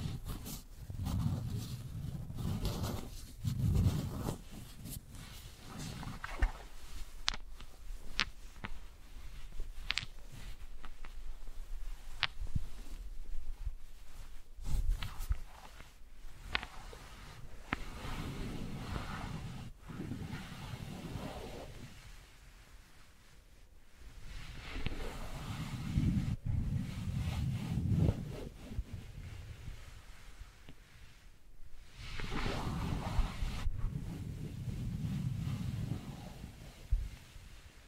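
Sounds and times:
soft steady hiss: 0.0s - 37.8s
wooden balls rolling and knocking: 9.7s - 11.2s.

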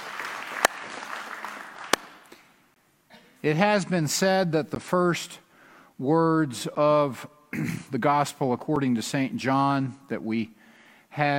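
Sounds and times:
church audience applause: 0.0s - 2.3s
speech: 3.4s - 5.4s, 6.0s - 11.3s.

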